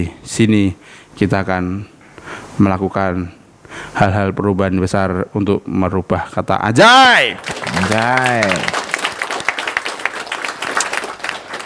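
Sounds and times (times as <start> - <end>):
speech: 0.0 - 1.9, 2.6 - 8.7
crowd applauding: 7.2 - 11.6.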